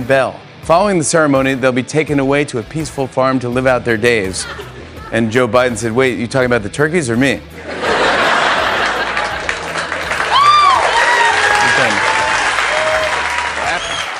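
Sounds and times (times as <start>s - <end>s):
speech: 0.0s - 7.9s
laughter: 4.2s - 5.4s, 7.6s - 10.7s, 13.0s - 14.1s
audience cheering and applauding: 7.8s - 14.1s.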